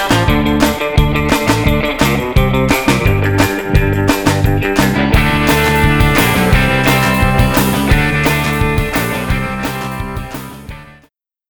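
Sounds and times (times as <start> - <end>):
alternative punk music mix: 0.0 - 11.1.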